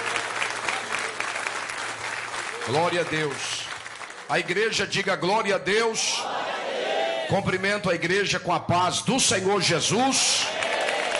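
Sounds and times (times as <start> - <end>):
church congregation applauding for Jesus: 0.0 - 5.2, 10.2 - 11.1
speech: 2.6 - 3.7, 4.3 - 6.4, 7.3 - 10.5.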